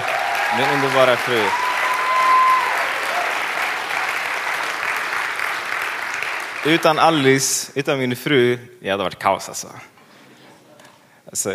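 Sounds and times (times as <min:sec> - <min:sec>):
big round of applause from a crowd: 0:00.0 - 0:07.4
speech: 0:00.5 - 0:01.6, 0:06.6 - 0:09.9, 0:11.3 - 0:11.5.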